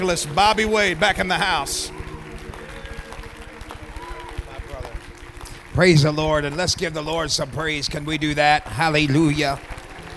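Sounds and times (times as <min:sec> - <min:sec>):
speech: 0:00.0 - 0:02.0, 0:05.8 - 0:09.7
audience clapping hands: 0:00.0 - 0:10.1.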